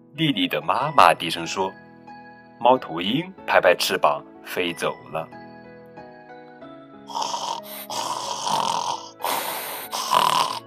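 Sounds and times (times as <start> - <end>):
speech: 0.2 - 1.8, 2.6 - 5.4
piglets snoring in a pigsty: 7.1 - 10.6.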